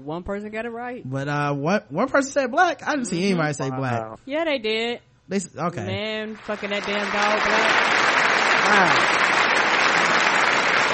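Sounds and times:
speech: 0.0s - 8.0s, 8.6s - 9.3s
crowd applause: 6.4s - 10.9s.

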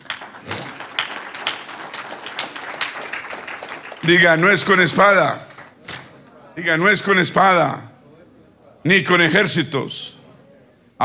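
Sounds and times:
audience applauding: 0.0s - 5.8s
speech: 4.0s - 5.5s, 6.6s - 7.9s, 8.8s - 10.2s.

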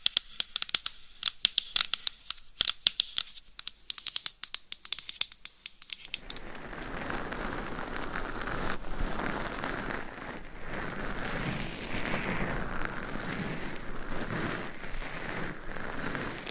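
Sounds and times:
sharp taps and clicks: 0.0s - 6.4s
crinkly scratching: 6.0s - 16.4s.

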